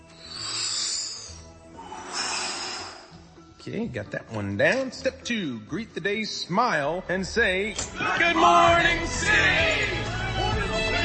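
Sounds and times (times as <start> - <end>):
slow, deliberate breathing: 0.0 - 3.4
speech: 3.6 - 10.0.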